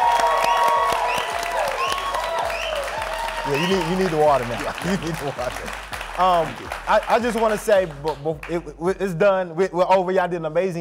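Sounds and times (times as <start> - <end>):
audience applause: 0.0 - 8.3
speech: 3.5 - 10.8.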